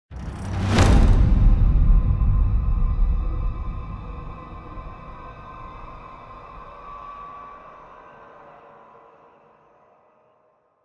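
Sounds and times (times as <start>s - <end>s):
combat music transition: 0.1s - 5.9s.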